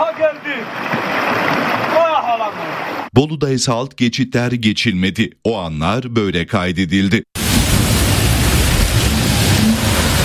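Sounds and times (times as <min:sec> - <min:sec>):
floodwater rushing down a swollen stream in Haymana, Ankara, after heavy rain: 0:00.0 - 0:03.1, 0:07.4 - 0:10.2
floodwater splashing: 0:00.2 - 0:03.1, 0:07.4 - 0:10.2
speech: 0:03.2 - 0:07.4.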